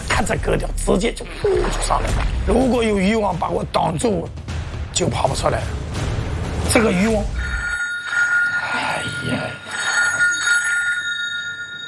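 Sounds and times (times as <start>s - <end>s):
speech: 0.2s - 6.1s, 6.7s - 7.4s
telephone ringing with an incoming distress call: 7.4s - 11.8s.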